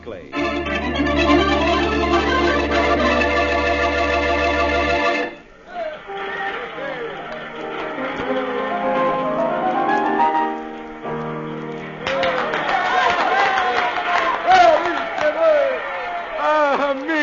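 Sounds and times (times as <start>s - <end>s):
sustained musical tones: 0.3s - 12.6s
cafe crowd cheering and shouting for more: 5.7s - 9.3s, 12.0s - 17.2s.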